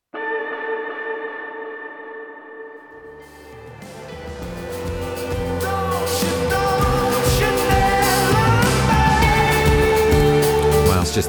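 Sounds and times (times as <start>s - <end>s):
sung vocal on last chorus word, doubled an octave up, with heavy delay and reverb: 4.6s - 11.2s.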